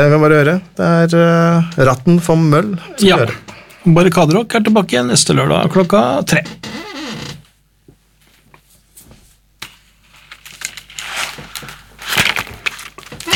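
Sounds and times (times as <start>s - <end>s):
speech: 0.0s - 7.3s
chair creaking: 5.5s - 7.6s, 10.3s - 13.3s.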